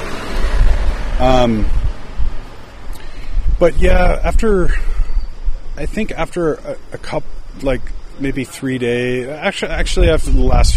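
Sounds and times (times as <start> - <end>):
cars driving past: 0.0 - 3.6
speech: 1.2 - 1.8, 3.6 - 4.9, 5.8 - 10.7.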